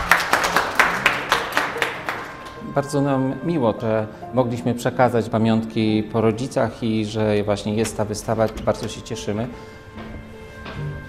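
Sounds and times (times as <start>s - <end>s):
crisp claps at an exhibition opening: 0.0s - 2.6s
speech: 2.8s - 9.8s.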